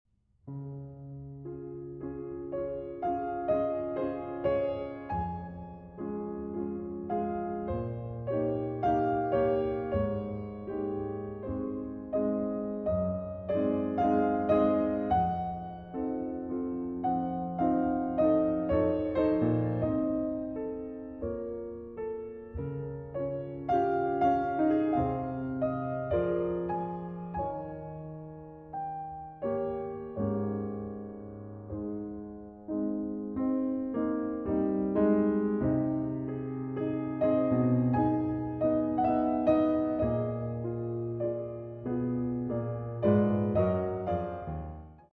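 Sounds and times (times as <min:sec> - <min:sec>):
slow larghetto piano piece: 0:00.4 - 0:45.1.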